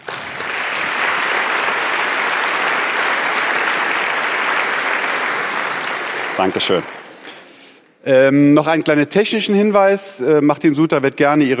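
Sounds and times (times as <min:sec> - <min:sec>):
audience applause: 0:00.0 - 0:07.2
speech: 0:06.4 - 0:07.0, 0:08.0 - 0:11.5.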